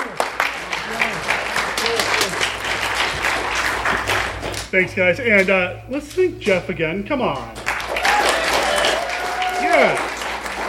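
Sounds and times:
audience round of applause: 0:00.0 - 0:04.7, 0:07.6 - 0:10.6
speech: 0:04.7 - 0:07.6.

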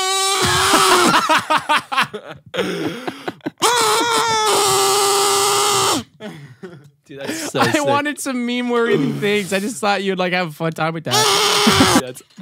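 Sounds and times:
kazoo being played: 0:00.0 - 0:01.0, 0:03.6 - 0:06.2, 0:11.1 - 0:12.1
laughter: 0:00.4 - 0:04.8, 0:06.2 - 0:08.0, 0:11.6 - 0:12.2
speech: 0:01.4 - 0:04.8, 0:07.1 - 0:12.4.

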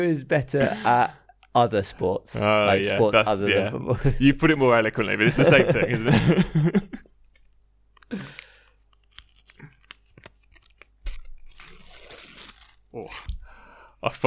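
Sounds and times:
speech: 0:00.0 - 0:07.0, 0:14.0 - 0:14.2
laughter: 0:00.4 - 0:01.2, 0:03.9 - 0:07.1
tearing open a sticker packet: 0:08.2 - 0:13.4.

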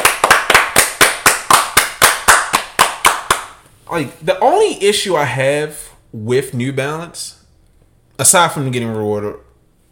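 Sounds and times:
round of applause: 0:00.0 - 0:03.5
speech: 0:03.9 - 0:07.4, 0:08.2 - 0:09.9.

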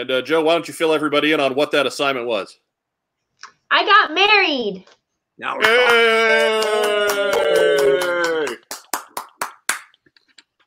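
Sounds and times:
speech: 0:00.0 - 0:02.6, 0:03.4 - 0:07.6
sharp hand claps: 0:05.6 - 0:10.5.

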